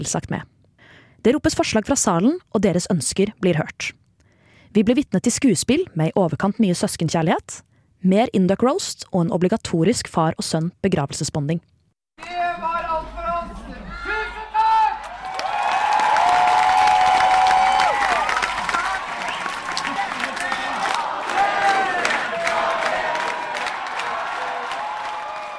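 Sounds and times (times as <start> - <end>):
speech: 0.0 - 0.5, 1.2 - 4.0, 4.7 - 12.8
audience applause in a hall: 14.9 - 25.5
large audience chattering and murmuring in a hall: 18.0 - 24.3.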